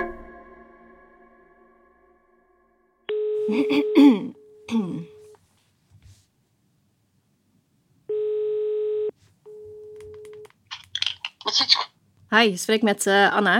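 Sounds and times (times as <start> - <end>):
speech: 3.5 - 5.1, 12.3 - 13.5
ringing tones on an outgoing telephone call: 8.1 - 10.4.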